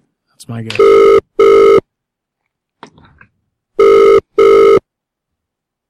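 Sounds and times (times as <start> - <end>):
speech: 0.4 - 1.2
phone call ringing unanswered: 0.8 - 1.8, 3.8 - 4.8.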